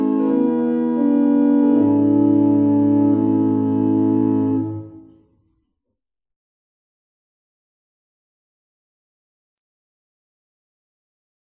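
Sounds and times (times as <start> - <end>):
barrel organs playing in Abingdon: 0.0 - 5.1.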